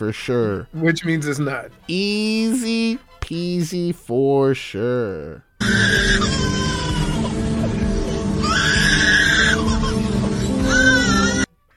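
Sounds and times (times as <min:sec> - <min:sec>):
speech: 0:00.0 - 0:06.6
baby crying: 0:05.6 - 0:11.5.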